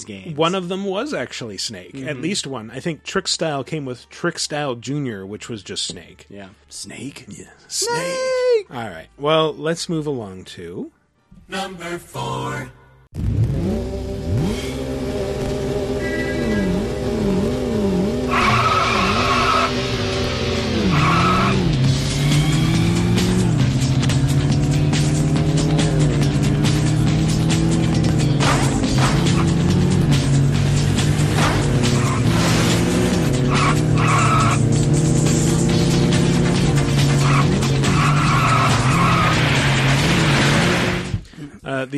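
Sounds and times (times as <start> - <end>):
speech: 0.0 - 14.2
racing video game car engines revving: 13.2 - 41.2
racing video game car tires squealing: 13.5 - 41.2.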